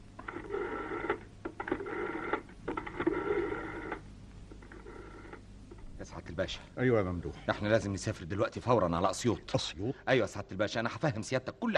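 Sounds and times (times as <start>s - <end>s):
telephone being dialed: 0.2s - 5.4s
speech: 6.3s - 11.7s.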